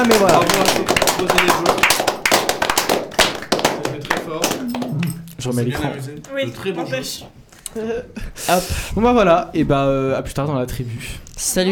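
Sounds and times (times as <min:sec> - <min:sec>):
speech: 0:00.0 - 0:02.0, 0:05.4 - 0:11.7
small group applauding: 0:00.0 - 0:05.6.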